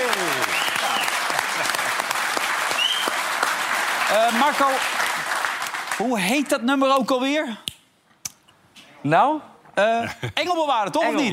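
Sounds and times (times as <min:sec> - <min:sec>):
audience applause: 0:00.0 - 0:06.5
speech: 0:04.1 - 0:05.0, 0:06.0 - 0:07.6, 0:09.0 - 0:11.3.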